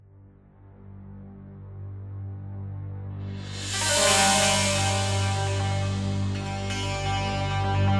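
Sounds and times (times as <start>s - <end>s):
level start music loop: 3.6s - 7.9s.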